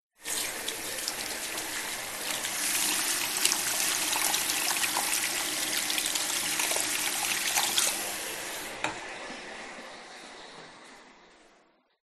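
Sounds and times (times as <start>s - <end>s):
washing hands: 0.2s - 8.7s.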